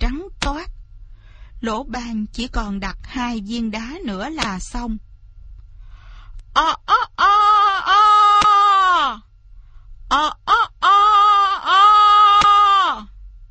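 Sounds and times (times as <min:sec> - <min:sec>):
speech: 0:01.6 - 0:05.1, 0:06.6 - 0:07.1
person imitating rooster crowing: 0:06.6 - 0:09.2, 0:10.1 - 0:13.1.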